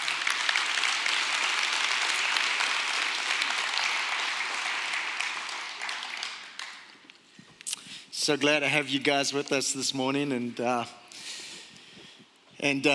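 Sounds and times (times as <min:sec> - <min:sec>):
audience clapping welcoming a couple at a morning event: 0:00.0 - 0:07.2
speech: 0:08.2 - 0:11.0, 0:12.6 - 0:12.9.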